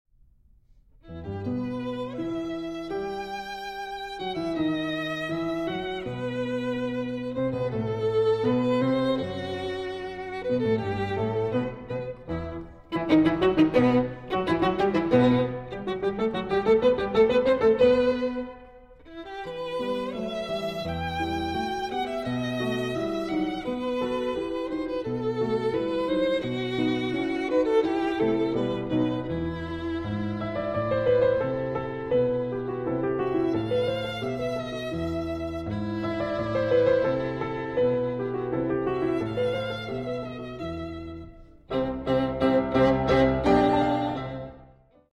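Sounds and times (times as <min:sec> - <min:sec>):
sonata for piano and violin in E minor: 0:00.8 - 0:45.1.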